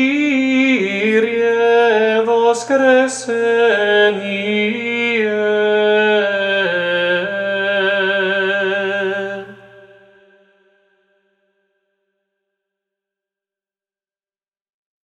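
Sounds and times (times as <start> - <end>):
Serbian liturgical chant: 0.0 - 11.2.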